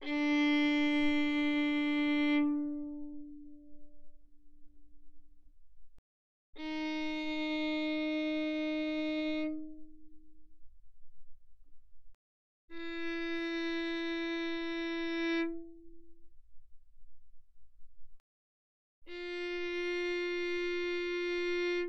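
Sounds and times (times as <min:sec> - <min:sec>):
violin bowed mezzo forte on the D string: 0:00.0 - 0:04.6, 0:06.6 - 0:10.5, 0:12.7 - 0:16.3, 0:19.1 - 0:21.8.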